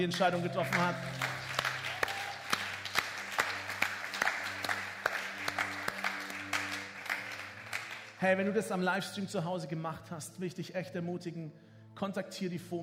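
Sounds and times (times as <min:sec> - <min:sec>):
speech: 0:00.0 - 0:01.3, 0:08.2 - 0:12.8
audience applause: 0:00.0 - 0:08.2.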